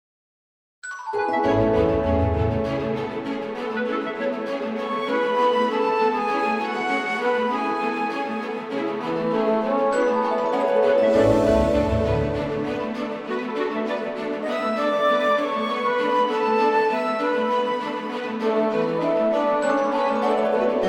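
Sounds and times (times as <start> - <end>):
playful magical cartoon film score music: 0.9 - 20.8.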